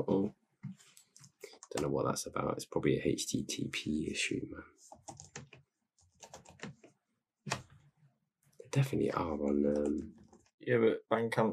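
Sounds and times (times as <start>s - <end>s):
speech: 0.0s - 0.4s, 1.7s - 5.2s, 8.7s - 11.5s
typing a search into Bandcamp on a computer keyboard: 5.0s - 6.8s.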